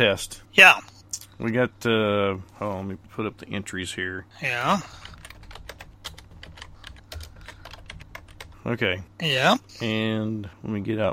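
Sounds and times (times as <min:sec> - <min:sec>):
speech: 0:00.0 - 0:05.2, 0:08.6 - 0:11.1
rapid typing on a computer keyboard searching Google for a number generator: 0:04.8 - 0:08.6.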